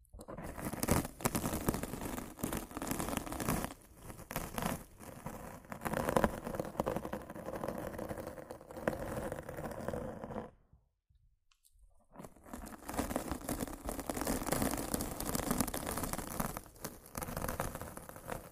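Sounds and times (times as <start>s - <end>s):
rough scratching and brushing against a microphone: 0.0s - 10.6s, 12.1s - 18.5s.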